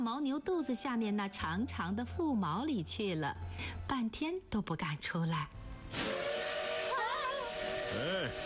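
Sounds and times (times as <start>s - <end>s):
speech: 0.0s - 6.2s, 8.0s - 8.4s
train whistle: 5.9s - 8.4s.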